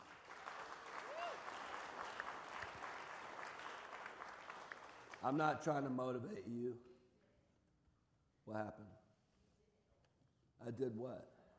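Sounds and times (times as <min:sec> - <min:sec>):
audience applause: 0:00.0 - 0:05.5
audience cheers and whoops: 0:01.0 - 0:01.8
speech: 0:05.2 - 0:06.9, 0:08.5 - 0:09.0, 0:10.6 - 0:11.4.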